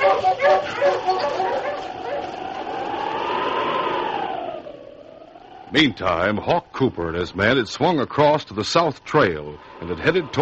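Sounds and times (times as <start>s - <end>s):
sled huskies barking and yipping: 0.0s - 4.0s
sled husky howling: 0.0s - 6.1s
speech: 5.7s - 10.4s.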